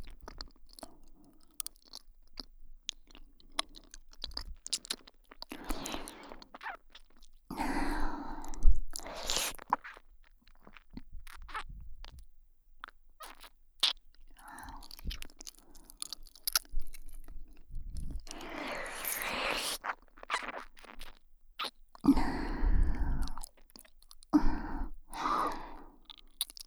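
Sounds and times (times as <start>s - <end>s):
ASMR ear licking loop: 3.4s - 10.0s, 13.2s - 26.6s.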